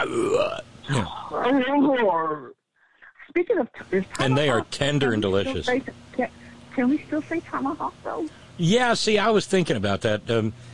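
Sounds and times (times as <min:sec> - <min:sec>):
man imitating growling caveman eating noises: 0:00.0 - 0:01.4
speech: 0:00.0 - 0:02.6, 0:03.3 - 0:10.7.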